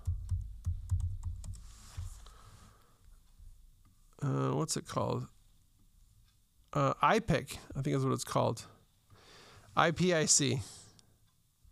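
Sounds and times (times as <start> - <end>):
typing a search on a keyboard: 0.0 - 1.7
speech: 4.2 - 5.4, 6.8 - 8.8, 9.8 - 10.8.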